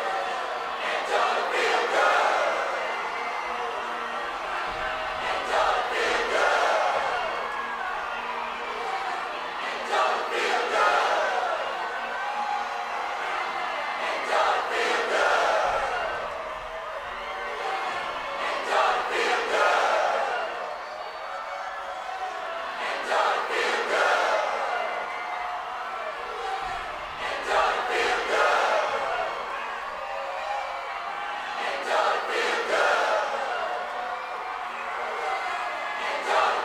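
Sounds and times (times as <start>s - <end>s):
crowd: 0.0s - 36.6s.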